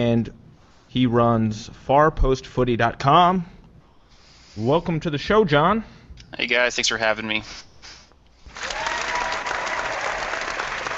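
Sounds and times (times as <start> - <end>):
speech: 0.0 - 3.5, 4.6 - 7.7
crowd applause effect: 8.5 - 10.9.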